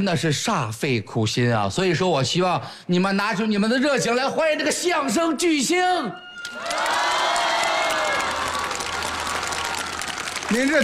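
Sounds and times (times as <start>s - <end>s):
speech: 0.0s - 7.1s, 10.5s - 10.8s
audience applause: 6.4s - 10.8s.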